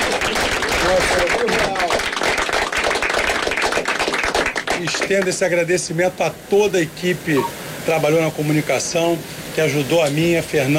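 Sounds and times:
audience applause: 0:00.0 - 0:05.3
speech: 0:04.8 - 0:10.7.

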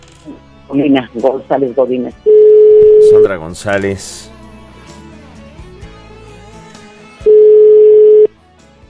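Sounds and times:
speech: 0:00.2 - 0:02.3, 0:03.0 - 0:04.3
telephone dialing beeps: 0:02.3 - 0:03.2, 0:07.3 - 0:08.3.

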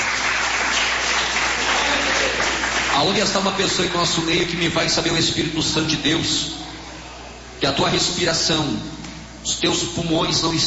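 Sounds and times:
church congregation clapping in praise of Jesus: 0:00.0 - 0:04.0
speech: 0:03.0 - 0:06.6, 0:07.6 - 0:10.6.

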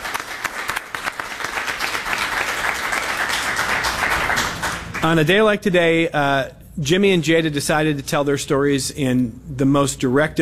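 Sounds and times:
audience applause: 0:00.0 - 0:05.1
speech: 0:05.0 - 0:10.3.

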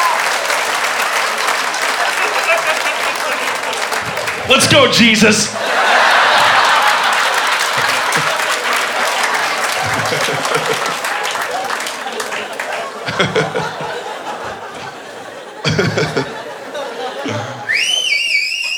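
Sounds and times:
laughter: 0:00.0 - 0:18.3
cheering: 0:00.0 - 0:18.7
crowd applause: 0:00.0 - 0:18.7
speech: 0:04.5 - 0:05.9
loud warbling whistle: 0:17.7 - 0:18.7.

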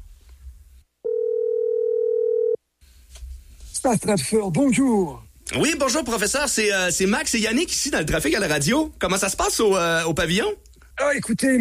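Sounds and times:
telephone ringback tone: 0:01.0 - 0:02.6
speech: 0:03.8 - 0:11.6.

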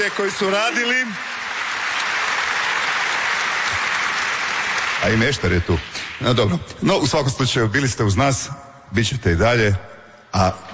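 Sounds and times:
speech: 0:00.0 - 0:01.4, 0:05.0 - 0:10.7
studio audience applause for the Dobro jutro Hrvatska team: 0:00.0 - 0:06.4.

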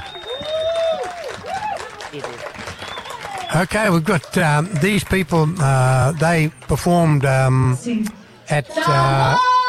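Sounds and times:
audience applause: 0:00.0 - 0:07.5
speech: 0:03.5 - 0:09.5.

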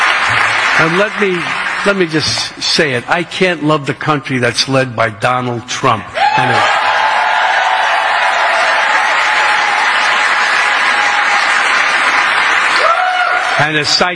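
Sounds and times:
crowd applauding and cheering: 0:00.0 - 0:03.0, 0:06.2 - 0:14.1
speech: 0:00.8 - 0:06.8, 0:13.6 - 0:14.1
whoops: 0:06.2 - 0:10.2, 0:12.8 - 0:13.6.

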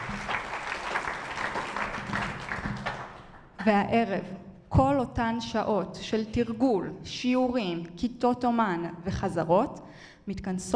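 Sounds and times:
audience applauding students: 0:00.0 - 0:03.4
speech: 0:03.6 - 0:10.7.

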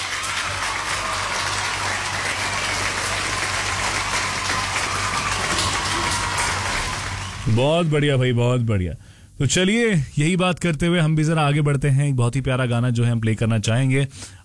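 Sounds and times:
applause played for correct answers: 0:00.0 - 0:08.4
speech: 0:07.5 - 0:14.4.

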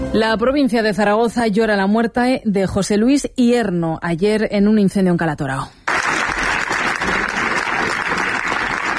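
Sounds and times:
speech: 0:00.1 - 0:05.8
applause breaking a minute of silence: 0:05.9 - 0:08.9.

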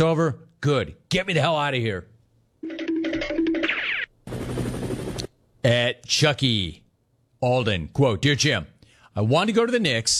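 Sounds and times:
speech: 0:00.0 - 0:02.1, 0:05.6 - 0:06.8, 0:07.4 - 0:10.1
helicopter flying: 0:03.1 - 0:05.3.

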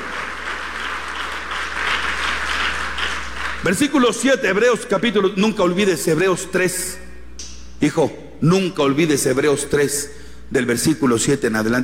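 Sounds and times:
audience applause: 0:00.0 - 0:03.7
speech: 0:03.6 - 0:07.0, 0:07.8 - 0:11.8.

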